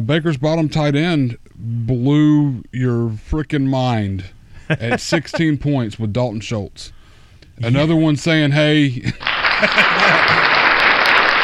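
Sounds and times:
speech: 0:00.0 - 0:07.0, 0:07.6 - 0:10.6
laughter: 0:04.6 - 0:05.6, 0:09.0 - 0:11.4
applause sound effect: 0:09.2 - 0:11.4.

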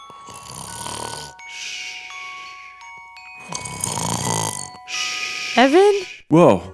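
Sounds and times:
voice imitating snoring while dozing off: 0:00.0 - 0:02.2, 0:03.4 - 0:06.1
quiet breath: 0:00.0 - 0:06.3
speech: 0:05.6 - 0:06.7.

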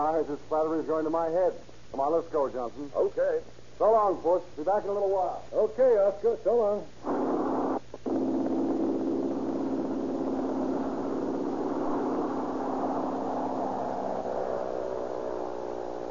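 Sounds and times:
speech: 0:00.0 - 0:07.2
small airplane engine revving for takeoff: 0:08.3 - 0:16.1.

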